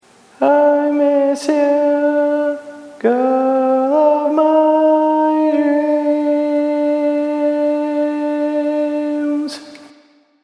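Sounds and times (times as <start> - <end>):
tenor singing barbershop tag: 0.0 - 9.9.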